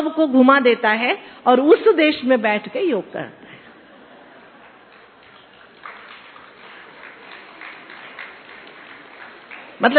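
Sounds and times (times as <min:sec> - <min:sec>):
speech: 0:00.0 - 0:03.4, 0:09.8 - 0:09.9
audience clapping: 0:04.6 - 0:09.9.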